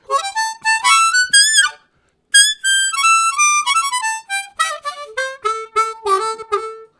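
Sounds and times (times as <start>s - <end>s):
harmonica at highest pitch: 0.0s - 6.9s.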